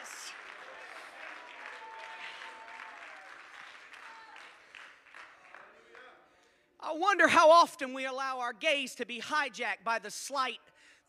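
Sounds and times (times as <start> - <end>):
audience clapping hands: 0.0 - 6.2
speech: 6.9 - 11.0.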